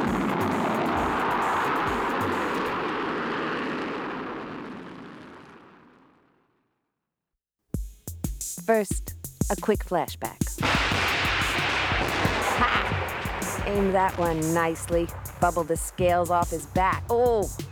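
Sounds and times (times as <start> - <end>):
futuristic air car blasting off: 0.0 - 5.1, 10.6 - 16.4
speech: 8.7 - 10.8, 13.7 - 17.6.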